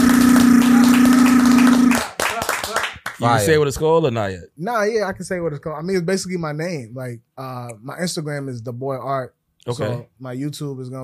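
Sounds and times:
clapping: 0.0s - 3.2s
speech: 3.2s - 11.0s.

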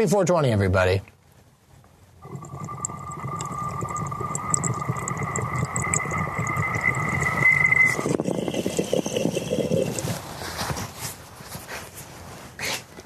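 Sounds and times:
speech: 0.0s - 1.1s
thin whistling tone: 2.2s - 10.2s
wet bong hit bubbling and gurgling: 2.2s - 10.9s.

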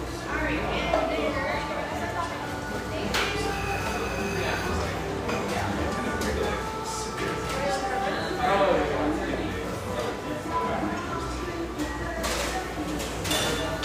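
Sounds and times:
cafe chatter of overlapping voices: 0.0s - 13.8s
dishes clinking and knocking in a cafe: 12.2s - 13.8s.

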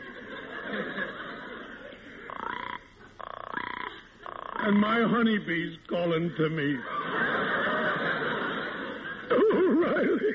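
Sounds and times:
laughter: 0.0s - 3.2s, 6.3s - 10.3s
female frog croaking to her mate near a lake: 2.3s - 5.0s
speech: 4.7s - 6.9s.

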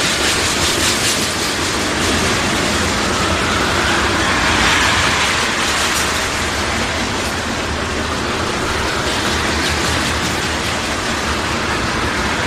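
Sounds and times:
train running on tracks: 0.0s - 12.4s.

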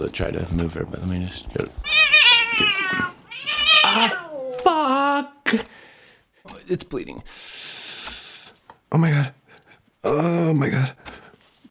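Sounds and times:
speech: 0.0s - 2.0s, 4.0s - 4.2s, 6.7s - 7.5s, 8.9s - 9.3s, 10.1s - 11.0s
female house cat meowing beside a microphone: 1.8s - 4.5s.

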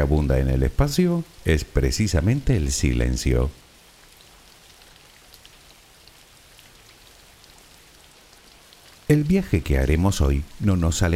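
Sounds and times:
speech: 0.0s - 3.6s, 9.1s - 11.1s
background rain: 0.0s - 11.1s.

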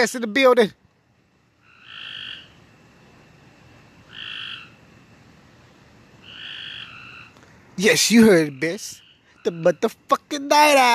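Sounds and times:
speech: 0.0s - 0.8s, 7.8s - 10.9s
steady hiss of noise: 0.0s - 10.9s
bullfrogs croaking at night: 1.2s - 10.9s.

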